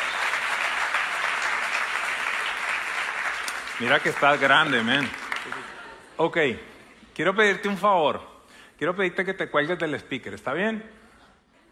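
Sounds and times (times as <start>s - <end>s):
crowd applauding: 0.0s - 6.0s
speech: 3.8s - 11.0s.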